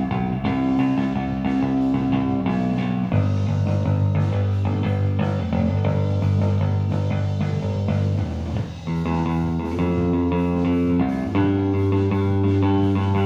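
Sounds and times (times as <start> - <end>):
bass recorded mono on SM57 microphone: 0.0 - 13.2.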